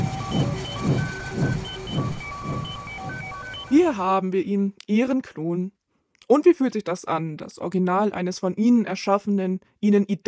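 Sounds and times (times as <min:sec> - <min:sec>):
pulsing electronic hum of a cloning device scanning a person: 0:00.0 - 0:03.8
speech: 0:03.8 - 0:10.2.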